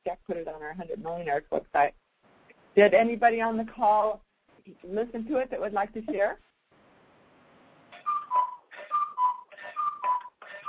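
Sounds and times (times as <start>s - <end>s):
speech: 0.1s - 2.0s, 2.8s - 6.5s
cuckoo clock call: 8.0s - 10.6s.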